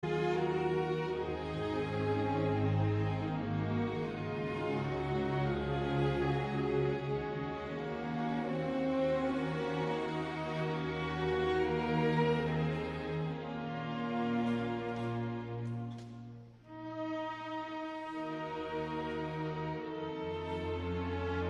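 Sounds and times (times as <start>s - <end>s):
sad music: 0.0s - 21.4s.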